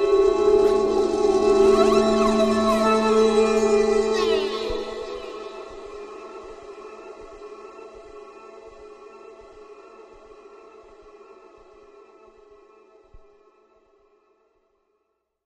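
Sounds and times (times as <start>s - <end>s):
sci-fi ambience: 0.0s - 11.2s
high robot voice: 4.1s - 5.7s.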